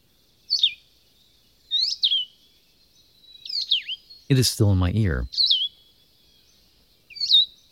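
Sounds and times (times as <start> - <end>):
solitary vireo call: 4.3 - 5.3
speech: 4.3 - 5.5.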